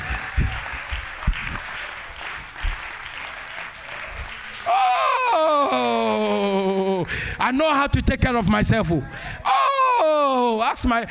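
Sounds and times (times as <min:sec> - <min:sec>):
audience clapping: 0:00.0 - 0:07.3
speech: 0:07.5 - 0:09.5, 0:10.5 - 0:11.0.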